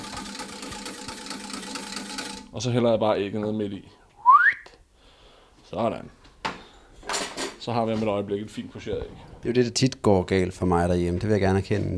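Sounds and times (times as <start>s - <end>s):
whisking water in a saucepan: 0.0s - 2.7s
speech: 2.6s - 4.0s, 5.7s - 6.2s, 7.6s - 11.9s.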